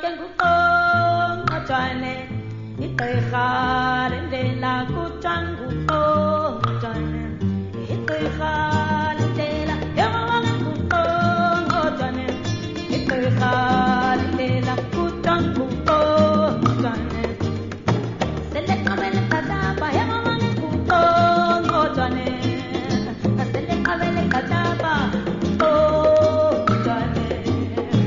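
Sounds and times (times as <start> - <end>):
song with clicking: 0.1 - 17.8, 18.3 - 28.0.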